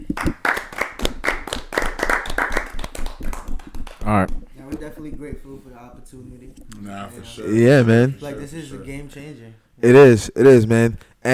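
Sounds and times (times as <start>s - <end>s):
live hand clapping: 0.0s - 5.2s
speech: 4.1s - 11.3s.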